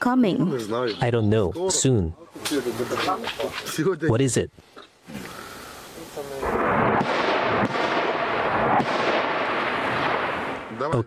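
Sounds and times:
speech: 0.0s - 5.4s, 10.8s - 11.0s
loud explosions: 6.1s - 11.0s.

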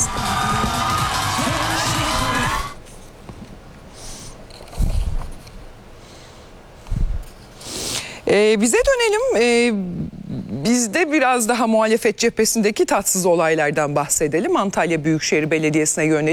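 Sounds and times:
crowd cheering and whooping at a celebration in Budapest: 0.0s - 2.8s
speech: 8.3s - 16.3s.

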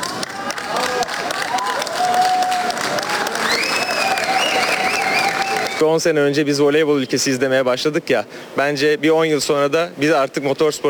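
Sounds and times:
crowd applauding pilot at airport: 0.0s - 5.8s
speech: 5.8s - 10.8s.

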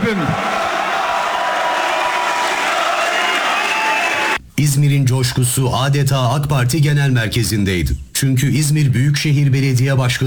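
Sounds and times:
large crowd cheering and chanting at an AK Party political rally in a packed hall: 0.0s - 4.4s
speech: 0.1s - 0.5s, 4.6s - 10.2s.

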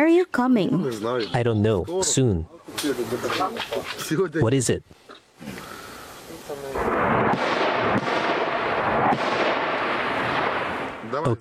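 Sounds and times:
speech: 0.0s - 5.8s, 11.1s - 11.3s
sharp blasts: 6.5s - 11.3s
explosions from fighting in the war in Ukraine booming: 6.7s - 11.3s.

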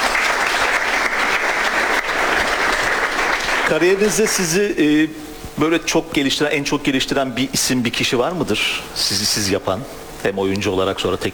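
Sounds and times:
audience applause: 0.0s - 4.5s
speech: 3.7s - 11.3s.

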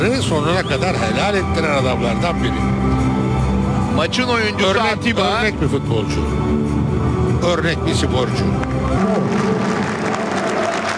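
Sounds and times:
speech: 0.0s - 3.0s, 3.9s - 6.8s, 7.4s - 9.0s
football stadium crowd applause: 8.9s - 10.9s.

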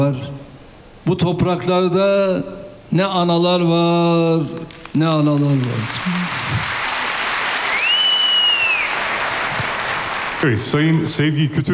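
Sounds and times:
speech: 0.0s - 0.3s, 1.0s - 6.6s, 10.4s - 11.7s
audience applause: 4.8s - 10.8s.

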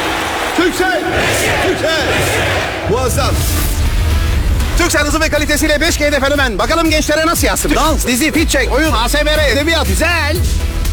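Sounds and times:
large crowd shouting in a Turkcell advert: 0.0s - 3.4s
speech: 0.6s - 3.7s, 4.8s - 10.7s.

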